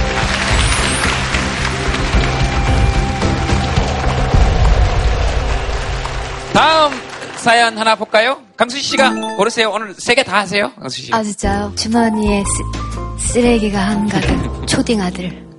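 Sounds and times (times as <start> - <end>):
audience applause: 0.0 - 8.4
speech: 7.4 - 15.5
laughter: 14.2 - 14.9.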